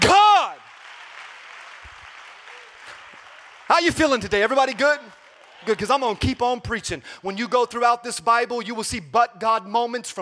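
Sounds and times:
audience clapping: 0.0 - 7.9
speech: 3.8 - 10.1.

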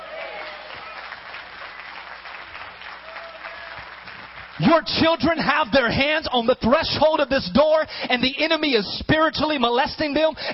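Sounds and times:
audience applause: 0.0 - 4.9
speech: 4.6 - 10.5.

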